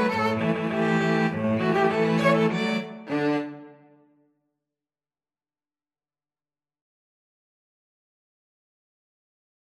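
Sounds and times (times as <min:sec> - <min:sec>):
violin and cello duet: 0:00.0 - 0:03.9.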